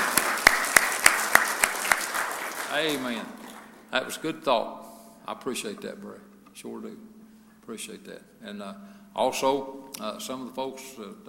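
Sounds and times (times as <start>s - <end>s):
audience round of applause: 0.0s - 3.8s
speech: 2.8s - 11.2s.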